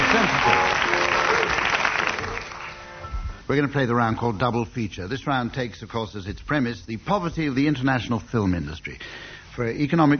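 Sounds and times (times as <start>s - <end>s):
audience clapping: 0.0s - 3.1s
speech: 3.5s - 10.1s.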